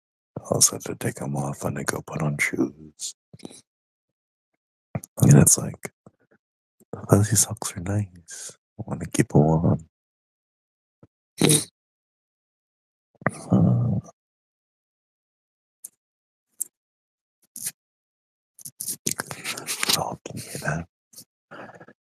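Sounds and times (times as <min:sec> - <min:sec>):
speech: 0:00.4 - 0:03.7, 0:05.0 - 0:06.0, 0:07.0 - 0:09.9, 0:11.4 - 0:11.7, 0:13.3 - 0:14.2, 0:20.0 - 0:20.9
stubble rubbed against a microphone in an ASMR recording: 0:18.8 - 0:20.7.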